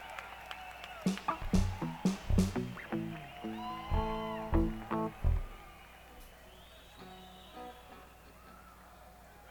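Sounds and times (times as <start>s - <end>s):
instrument tuning: 1.1s - 5.7s.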